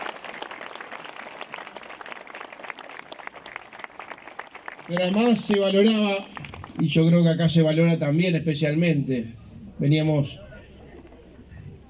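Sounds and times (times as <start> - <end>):
audience applause: 0.0 - 7.1
speech: 4.9 - 10.4.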